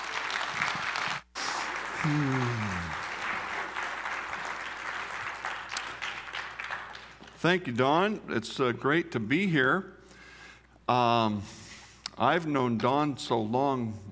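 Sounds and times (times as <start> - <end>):
audience applause welcoming a pastor to the stage: 0.0 - 7.3
speech: 2.0 - 2.8, 7.4 - 10.0, 10.9 - 11.6, 12.2 - 14.1.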